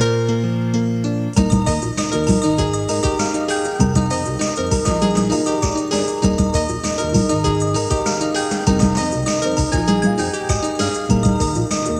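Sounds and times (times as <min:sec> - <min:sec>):
piano ditty: 0:00.0 - 0:11.9.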